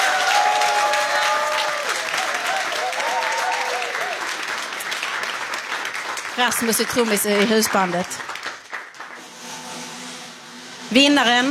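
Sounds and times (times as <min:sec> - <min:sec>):
whoops and cheers: 0:00.0 - 0:04.4
audience applause: 0:00.0 - 0:09.4
speech: 0:06.4 - 0:08.3, 0:10.9 - 0:11.5.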